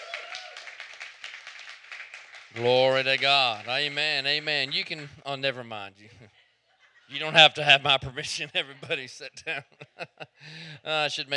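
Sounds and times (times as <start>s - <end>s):
crowd clapping: 0.0s - 5.5s
laughter: 2.6s - 5.2s, 6.8s - 11.3s
speech: 2.6s - 6.4s, 7.1s - 11.3s.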